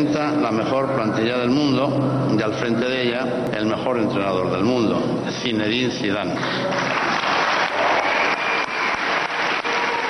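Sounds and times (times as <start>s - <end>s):
speech: 0.0s - 7.0s
large crowd giving a sustained ovation: 6.4s - 10.0s.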